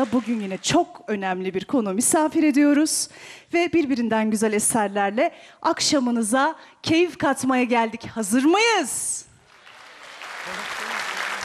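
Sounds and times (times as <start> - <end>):
folk-music evening audience applause: 0.0 - 0.7, 9.5 - 11.4
speech: 0.0 - 9.3.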